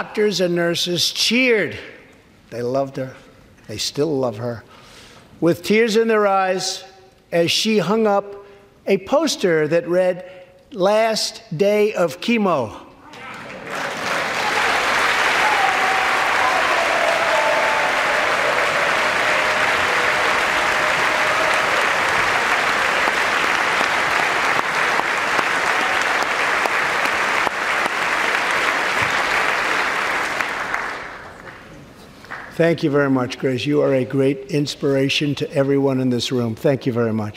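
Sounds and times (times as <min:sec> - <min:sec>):
speech: 0:00.0 - 0:04.8, 0:05.4 - 0:12.8, 0:32.6 - 0:37.3
polite unenthusiastic audience applause: 0:13.2 - 0:32.5.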